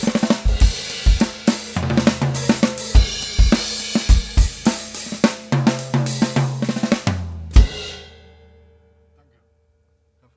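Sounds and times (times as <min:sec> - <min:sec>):
snare drum: 0:00.0 - 0:07.8
drums recorded on a handheld recorder: 0:00.0 - 0:08.9.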